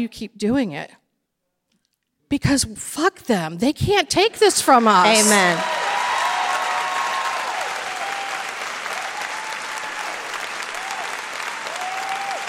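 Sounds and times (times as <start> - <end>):
speech: 0.0 - 1.0, 2.3 - 5.8
live audience applause: 4.7 - 12.4.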